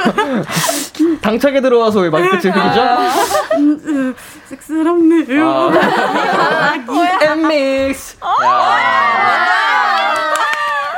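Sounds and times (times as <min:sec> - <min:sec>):
laughter: 0:00.0 - 0:01.0, 0:02.2 - 0:04.0, 0:05.3 - 0:10.9
speech: 0:01.2 - 0:09.6
audience cheering: 0:08.2 - 0:10.9
audience applause: 0:09.0 - 0:10.9.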